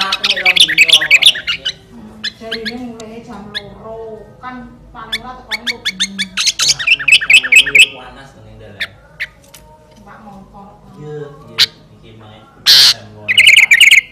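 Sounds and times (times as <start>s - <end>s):
sooty-headed bulbul song in fierce style: 0.0s - 3.7s, 5.0s - 8.1s, 12.7s - 14.1s.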